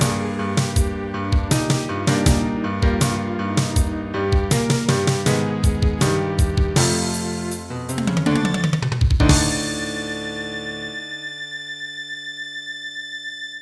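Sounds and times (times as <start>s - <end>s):
hard drums: 0.0s - 10.2s.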